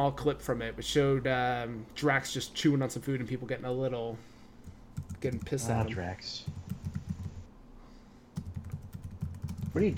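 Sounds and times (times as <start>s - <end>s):
speech: 0.0s - 4.3s, 5.2s - 6.6s, 9.8s - 9.9s
rapid typing on a computer keyboard: 5.0s - 5.5s, 6.4s - 7.4s, 8.4s - 9.8s.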